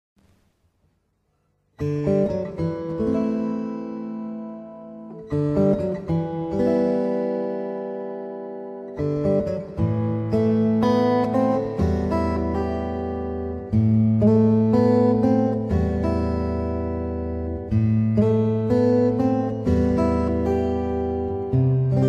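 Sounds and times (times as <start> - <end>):
fingerstyle guitar: 0.2 - 22.0.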